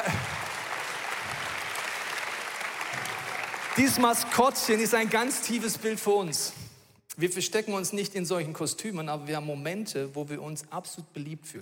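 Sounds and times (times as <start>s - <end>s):
audience applause: 0.0s - 6.1s
speech: 3.8s - 6.6s, 7.2s - 11.6s.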